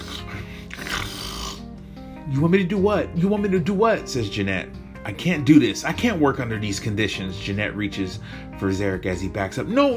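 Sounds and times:
heavy rasping snore: 0.0 - 1.7
speech: 2.3 - 9.9.

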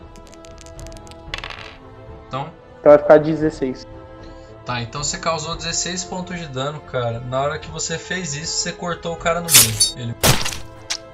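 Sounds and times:
dice being rolled: 0.0 - 1.8
speech: 2.3 - 4.0, 4.7 - 10.2.

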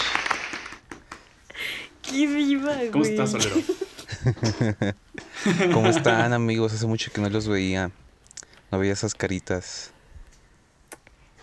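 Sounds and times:
applause: 0.0 - 1.7
speech: 2.1 - 8.0, 8.7 - 10.0
laughter: 3.0 - 6.4.

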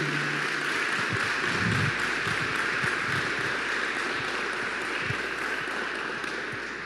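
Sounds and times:
audience applause: 0.0 - 6.8.

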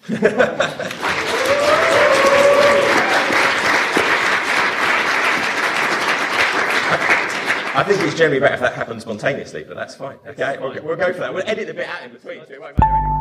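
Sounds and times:
laughter: 0.0 - 1.3, 6.8 - 7.3
speech: 0.1 - 0.8, 7.9 - 13.1
audience applause: 0.4 - 8.3
whooping: 1.0 - 3.6.

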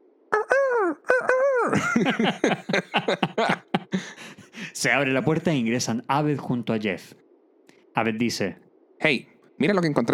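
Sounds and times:
person imitating a bird call with their voice: 0.3 - 1.9
speech: 1.0 - 7.2, 8.0 - 10.1
laughter: 1.6 - 5.3.

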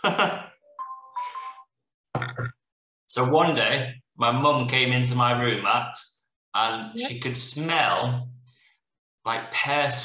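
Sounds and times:
speech: 0.0 - 0.5, 3.1 - 8.3, 9.2 - 10.0
phone medication reminder alarm chiming: 0.7 - 1.6
short vocal sound: 6.8 - 7.2.

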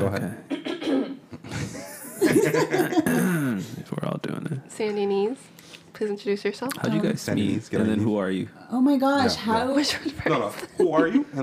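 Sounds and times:
speech: 0.0 - 0.5, 2.3 - 11.4
person clearing throat: 0.4 - 1.8, 3.0 - 3.8
laughter: 1.4 - 3.2.

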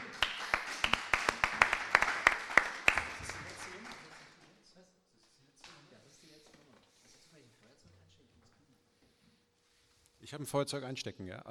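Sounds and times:
audience applause and clapping: 0.0 - 4.4
speech: 10.3 - 11.4.

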